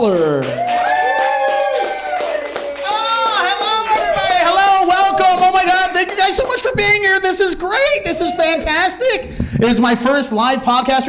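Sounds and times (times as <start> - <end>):
audience applause: 0.0 - 6.8
speech: 6.3 - 11.0.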